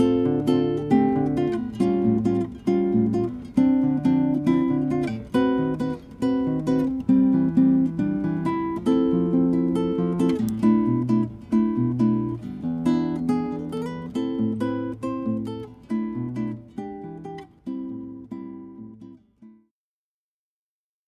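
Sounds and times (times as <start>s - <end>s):
guitar playing: 0.0s - 19.5s.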